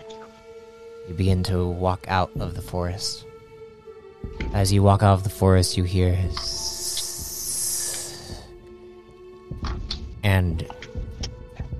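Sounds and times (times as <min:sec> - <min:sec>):
speech: 0:01.1 - 0:03.3, 0:04.3 - 0:06.7, 0:10.3 - 0:10.8
hissing: 0:06.2 - 0:08.7.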